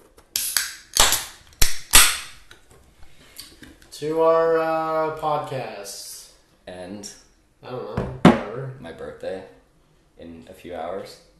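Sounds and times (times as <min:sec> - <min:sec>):
beer cans cracked open: 0:00.3 - 0:02.4
speech: 0:04.0 - 0:06.0, 0:06.9 - 0:09.4, 0:10.5 - 0:11.3.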